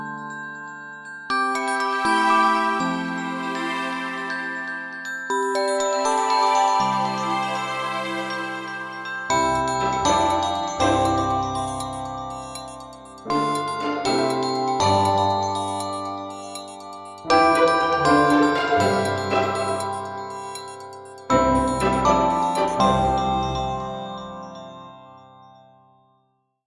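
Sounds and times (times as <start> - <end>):
morning alarm clock ringing: 1.4 - 25.0.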